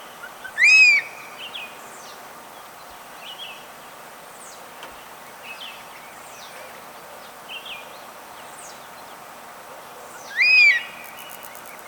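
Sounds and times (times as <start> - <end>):
black hawk-eagle whistled calls: 0.4 - 1.1, 10.2 - 11.2.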